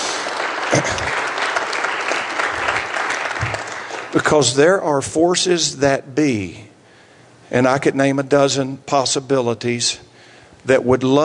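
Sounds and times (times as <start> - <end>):
audience clapping: 0.0 - 4.6
speech: 4.3 - 6.6, 7.5 - 11.2.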